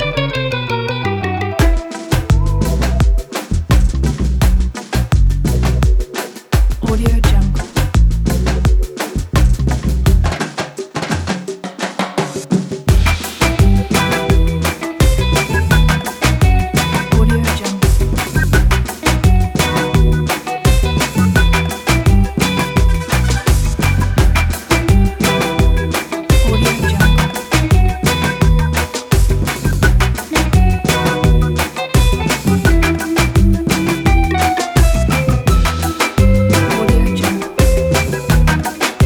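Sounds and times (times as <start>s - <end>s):
afro reggae beat: 0.0s - 39.0s.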